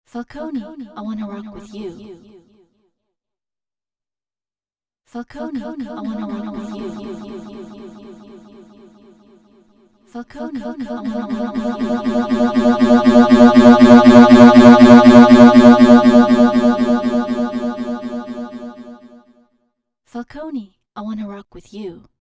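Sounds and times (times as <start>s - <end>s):
delay effect: 10.9s - 19.1s.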